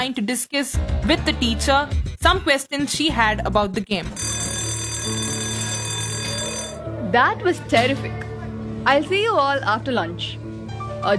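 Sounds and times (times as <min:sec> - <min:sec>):
speech: 0:00.0 - 0:04.5, 0:07.1 - 0:10.4
school lunch bell ringing: 0:04.2 - 0:08.2.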